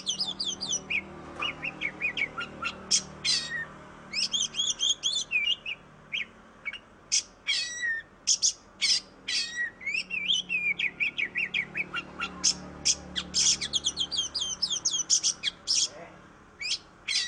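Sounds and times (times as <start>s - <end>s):
Oriental magpie-robin singing whistles and chirps: 0.0s - 15.9s, 16.6s - 17.2s.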